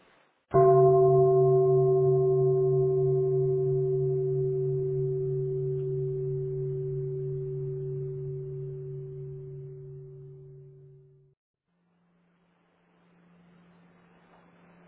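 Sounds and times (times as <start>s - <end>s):
deep meditation bell struck during a Buddhist dharma talk: 0.5s - 11.4s.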